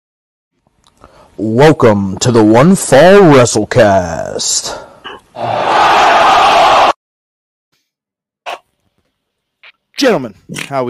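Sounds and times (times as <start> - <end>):
speech: 1.4 - 6.4, 10.0 - 10.8
fart sound made with mouth: 5.0 - 5.3.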